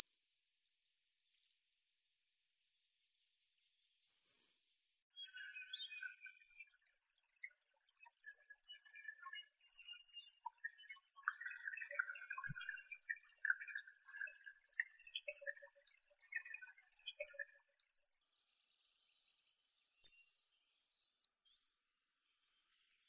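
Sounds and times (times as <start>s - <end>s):
common kingfisher Alcedo atthis calling: 5.3s - 7.6s, 8.3s - 17.5s.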